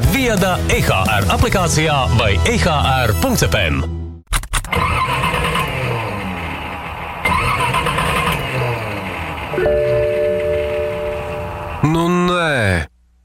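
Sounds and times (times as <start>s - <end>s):
speech: 0.2s - 4.0s, 11.8s - 12.9s
old car engine struggling to start: 4.5s - 11.9s.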